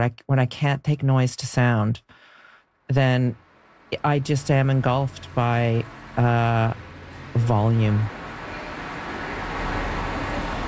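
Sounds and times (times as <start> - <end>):
speech: 0.0 - 2.2, 2.9 - 8.2
cars passing in traffic: 3.2 - 10.6.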